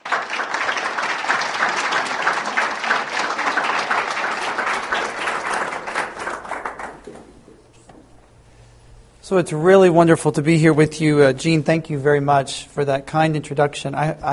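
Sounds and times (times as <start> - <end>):
audience applauding to welcome a speaker: 0.0 - 7.8
speech: 9.3 - 14.3.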